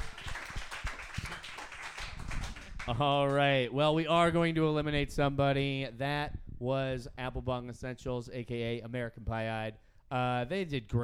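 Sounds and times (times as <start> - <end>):
audience clapping: 0.0 - 3.4
speech: 2.9 - 11.0.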